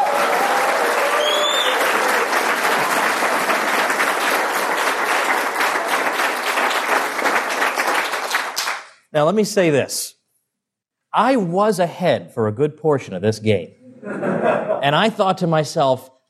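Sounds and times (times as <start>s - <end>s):
audience applause: 0.0s - 8.9s
speech: 9.2s - 10.2s, 11.1s - 16.1s
laughter: 13.8s - 15.2s.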